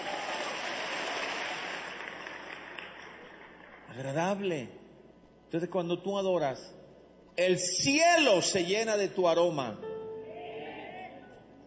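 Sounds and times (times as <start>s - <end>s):
audience applauding: 0.0s - 3.9s
speech: 3.9s - 4.8s, 5.5s - 6.8s, 7.4s - 9.8s.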